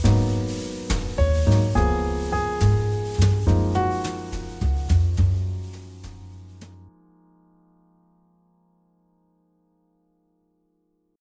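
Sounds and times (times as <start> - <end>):
jazz ballad: 0.0 - 6.9.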